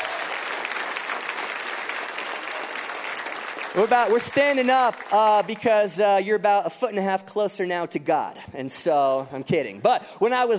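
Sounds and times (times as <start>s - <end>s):
church congregation applauding during a service: 0.0s - 5.9s
speech: 3.7s - 10.5s.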